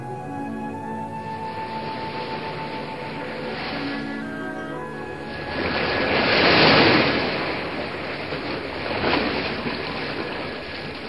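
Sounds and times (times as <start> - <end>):
sea waves and surf: 0.0 - 11.0.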